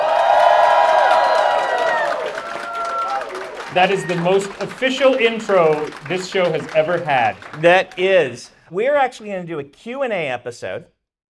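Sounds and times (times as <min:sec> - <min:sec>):
convention crowd screaming and cheering: 0:00.0 - 0:07.7
clapping: 0:00.0 - 0:08.4
speech: 0:03.7 - 0:10.9.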